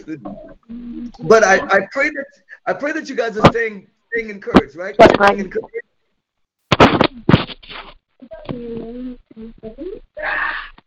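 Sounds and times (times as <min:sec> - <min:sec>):
speech: 0:00.0 - 0:05.8, 0:08.2 - 0:10.8
small child whimpering: 0:08.2 - 0:10.8.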